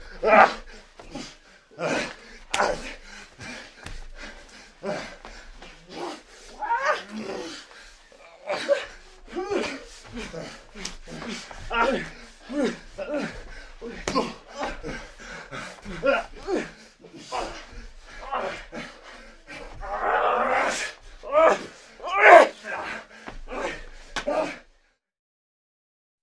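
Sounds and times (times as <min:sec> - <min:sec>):
people fighting: 0:00.1 - 0:24.7
fist punches: 0:02.5 - 0:02.9, 0:13.8 - 0:14.4.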